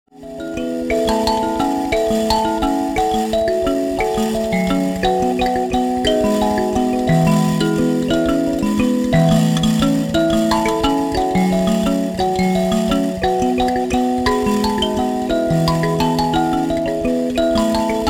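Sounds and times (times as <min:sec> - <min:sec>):
mbira: 0:00.1 - 0:18.0.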